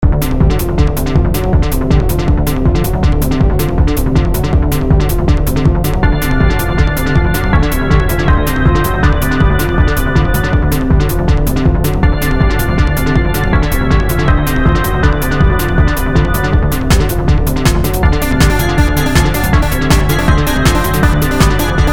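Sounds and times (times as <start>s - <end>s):
chase music: 0.0s - 21.9s.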